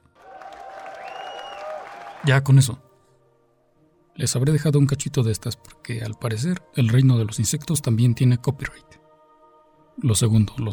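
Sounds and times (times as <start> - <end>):
crowd applause: 0.1 - 2.3
speech: 2.2 - 2.9, 4.2 - 9.0, 10.0 - 10.7.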